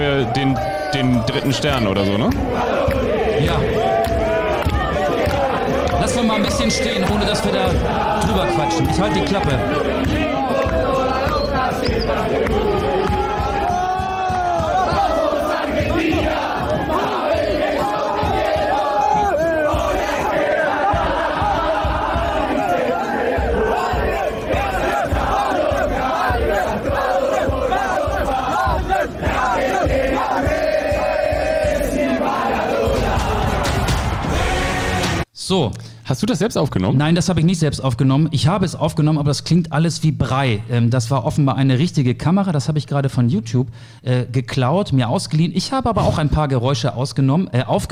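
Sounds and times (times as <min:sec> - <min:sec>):
speech: 0:00.0 - 0:02.8, 0:03.4 - 0:04.0, 0:06.1 - 0:10.3, 0:35.5 - 0:47.9
football fans singing a stadium chant: 0:00.0 - 0:35.3
rhythmic claps or stomps: 0:00.9 - 0:34.4.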